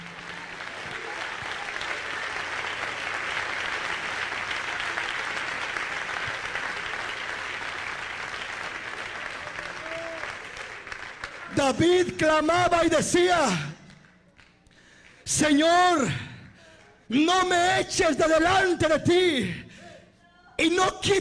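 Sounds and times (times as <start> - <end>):
audience clapping: 0.0 - 17.5
speech: 11.7 - 13.7, 15.4 - 16.2, 17.1 - 19.6, 20.6 - 21.1.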